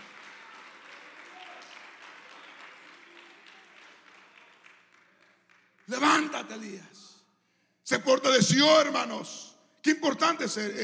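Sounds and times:
audience applause: 0:00.0 - 0:06.3
speech: 0:05.9 - 0:07.1, 0:07.9 - 0:10.8.

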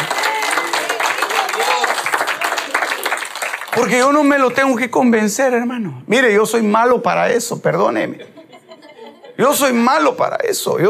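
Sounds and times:
audience applause: 0:00.0 - 0:04.2
speech: 0:03.8 - 0:08.4, 0:09.4 - 0:10.8
laughter: 0:08.0 - 0:09.7.

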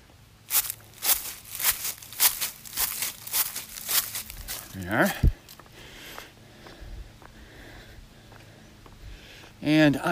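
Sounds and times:
footsteps crunching through dry leaves: 0:00.4 - 0:07.4
speech: 0:04.8 - 0:05.4, 0:09.6 - 0:10.1.

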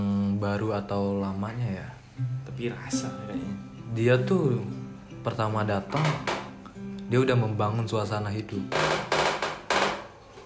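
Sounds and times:
speech: 0:00.4 - 0:06.4, 0:07.1 - 0:09.1
noisy wooden chair knocking: 0:05.9 - 0:06.6, 0:08.7 - 0:10.4.

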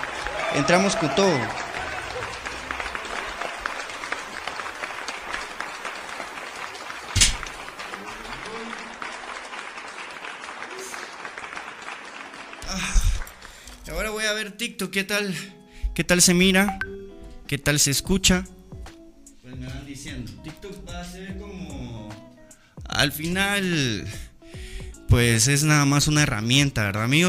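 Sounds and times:
applause: 0:00.0 - 0:13.7
speech: 0:00.5 - 0:01.6, 0:14.6 - 0:16.8, 0:17.5 - 0:18.6, 0:23.0 - 0:24.2, 0:25.1 - 0:27.2.

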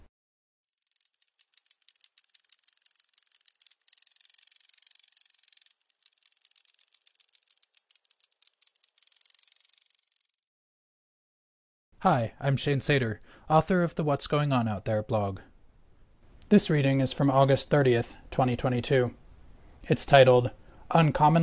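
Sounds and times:
Great Basin crackler grasshopper crackling: 0:00.6 - 0:10.5
speech: 0:12.0 - 0:15.5, 0:16.5 - 0:19.2, 0:19.8 - 0:21.4.

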